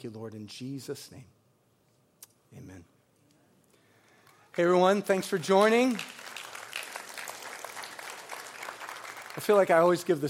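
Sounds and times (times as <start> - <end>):
speech: 0.0 - 1.4, 2.5 - 3.0, 4.6 - 6.2, 9.4 - 10.2
church congregation clapping during a service: 4.3 - 10.2.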